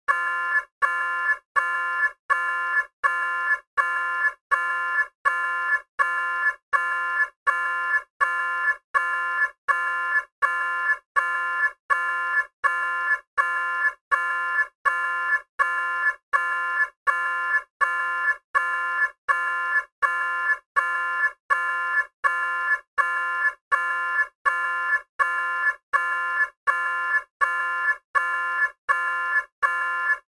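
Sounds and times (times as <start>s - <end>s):
nuclear meltdown alarm: 0.1s - 30.3s.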